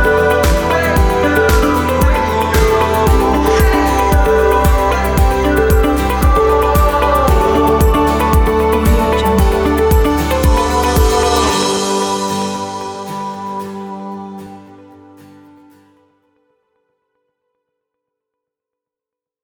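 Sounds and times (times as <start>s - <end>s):
corporate song: 0.0s - 15.2s.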